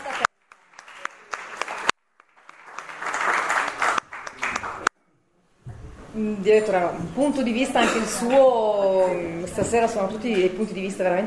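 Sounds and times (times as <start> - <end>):
audience applause: 0.0 - 4.9
speech: 6.2 - 11.2.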